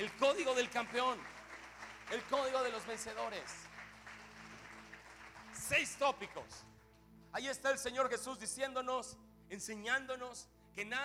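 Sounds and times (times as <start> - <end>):
speech: 0.0 - 1.4, 2.1 - 3.7, 5.7 - 6.7, 7.3 - 11.0
audience clapping: 0.0 - 7.0.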